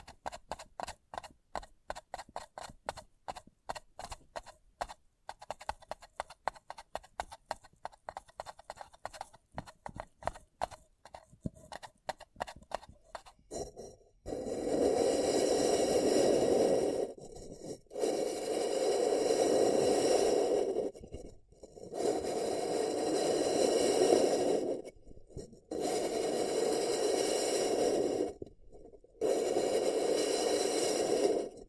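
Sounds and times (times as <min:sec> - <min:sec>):
quick dense tapping and clicking on a paper cup: 0:00.0 - 0:13.6
scratching or rubbing: 0:00.0 - 0:31.6.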